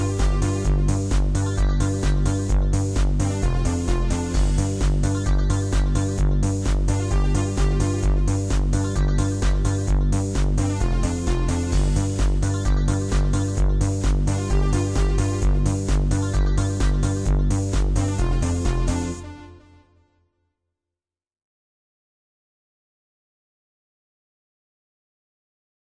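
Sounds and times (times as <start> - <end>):
techno music: 0.0 - 19.9.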